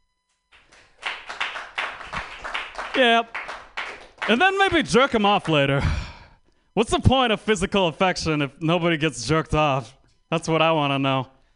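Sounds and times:
audience clapping: 0.5s - 5.7s
speech: 3.0s - 3.4s, 4.3s - 6.0s, 6.8s - 11.3s.

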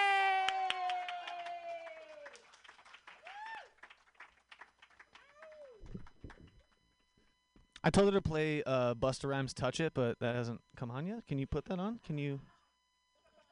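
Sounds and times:
high whooping and cheering voices: 0.0s - 3.9s, 5.1s - 6.0s
comedy show audience clapping: 0.0s - 6.8s
speech: 7.8s - 12.5s.

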